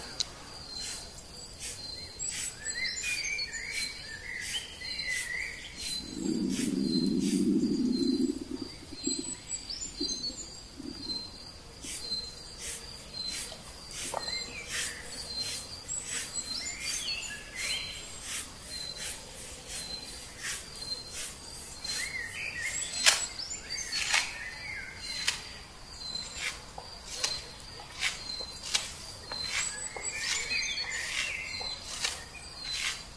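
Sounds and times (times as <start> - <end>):
bird chirps and calls: 0.0 - 33.1
insect drone: 0.0 - 33.1
low rumbling: 6.0 - 11.1.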